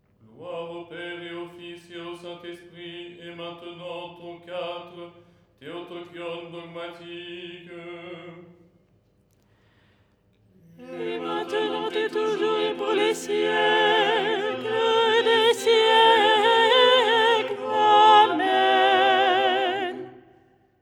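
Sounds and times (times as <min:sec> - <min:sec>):
soprano singing: 0:10.8 - 0:20.3.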